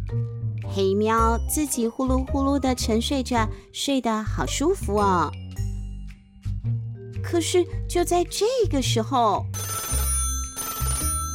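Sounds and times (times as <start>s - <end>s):
speech: 0.1s - 5.4s, 7.3s - 9.8s
intercom phone ringing: 9.6s - 11.3s.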